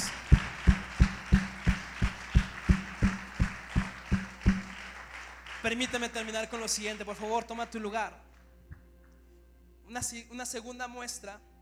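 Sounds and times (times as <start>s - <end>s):
audience applause: 0.0s - 6.7s
speech: 5.6s - 8.3s, 9.9s - 11.5s.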